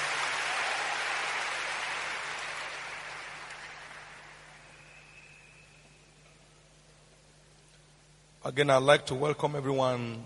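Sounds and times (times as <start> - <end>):
congregation applauding at a church service: 0.0 - 6.0
speech: 8.4 - 10.2.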